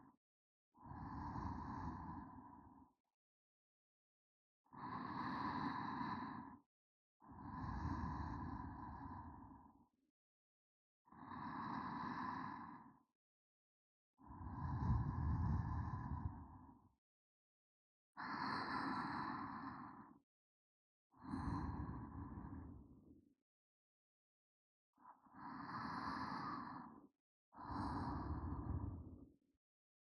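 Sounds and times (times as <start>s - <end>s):
sleeping breath: 0.9s - 2.8s, 4.8s - 6.6s, 7.4s - 9.8s, 11.1s - 13.0s, 14.2s - 16.7s, 18.2s - 20.2s, 21.2s - 22.9s, 25.2s - 29.3s.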